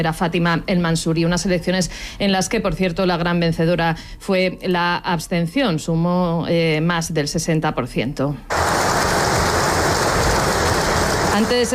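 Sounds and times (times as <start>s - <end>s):
speech: 0.0s - 8.8s, 11.4s - 11.7s
applause for King Mohamed VI: 8.5s - 11.7s.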